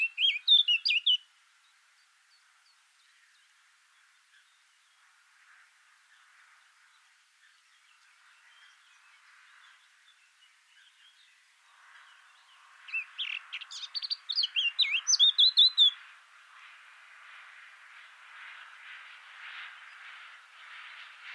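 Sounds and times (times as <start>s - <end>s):
Eurasian blackcap chirps and twittering: 0.0s - 5.1s, 6.1s - 16.1s.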